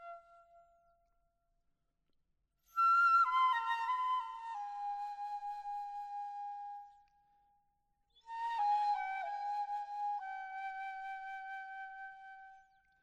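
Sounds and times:
bamboo flute: 0:00.0 - 0:00.8, 0:02.7 - 0:07.3, 0:08.1 - 0:13.0.

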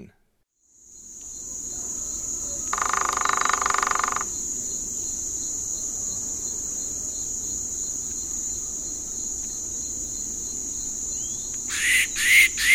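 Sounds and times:
white-throated woodpecker calling in eastern lowlands of South America: 0:02.5 - 0:04.4, 0:11.2 - 0:12.7.

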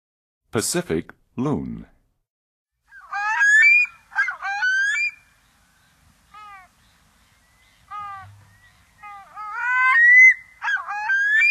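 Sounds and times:
Pacific loon calls and downward-curving yelps: 0:02.9 - 0:05.2, 0:07.9 - 0:11.4.

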